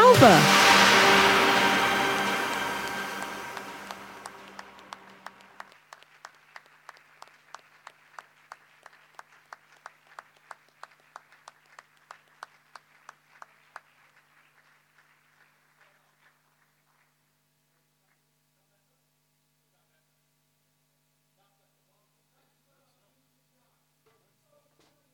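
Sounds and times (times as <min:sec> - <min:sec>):
audience applause welcoming a speaker: 0:00.0 - 0:17.1
speech: 0:00.2 - 0:00.6.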